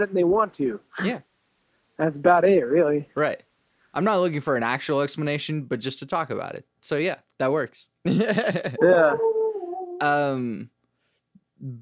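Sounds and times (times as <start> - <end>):
speech: 0.0 - 1.3, 2.0 - 9.4, 10.0 - 10.7, 11.6 - 11.8
laughter: 8.1 - 9.2
dog howling: 8.8 - 10.1.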